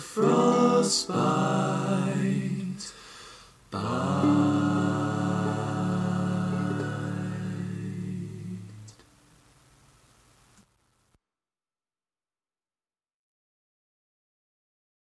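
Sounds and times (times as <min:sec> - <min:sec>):
ukulele: 0:00.0 - 0:02.8, 0:03.8 - 0:09.0
person singing a cover: 0:00.0 - 0:03.0, 0:03.7 - 0:09.0.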